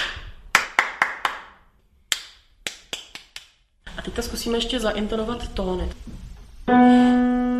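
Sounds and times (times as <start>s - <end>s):
hand-clapped rhythm repeated by a child: 0.0s - 3.6s
speech: 4.0s - 7.4s.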